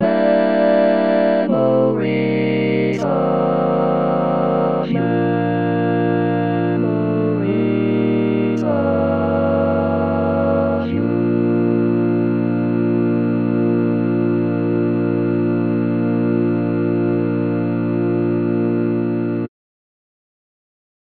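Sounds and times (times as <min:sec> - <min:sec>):
barbershop tags lead voice: 0:00.0 - 0:19.4.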